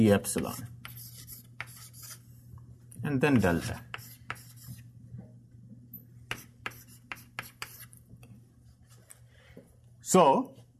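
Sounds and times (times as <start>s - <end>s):
speech: 0.0s - 0.8s, 3.0s - 3.9s, 10.1s - 10.6s
low steady hum: 0.0s - 10.7s
writing on a board during a lecture: 0.3s - 2.3s, 3.4s - 4.9s, 6.3s - 8.0s.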